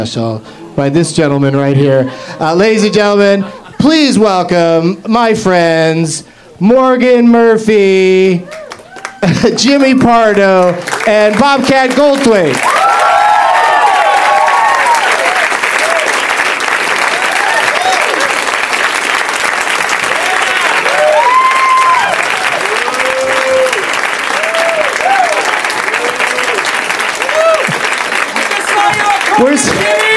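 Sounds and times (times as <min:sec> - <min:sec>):
speech: 0:00.0 - 0:08.6, 0:09.2 - 0:13.0
individual voices shouting and whooping: 0:08.4 - 0:09.4, 0:12.6 - 0:16.1, 0:17.1 - 0:18.3, 0:20.1 - 0:27.8
crowd applauding: 0:08.4 - 0:30.1.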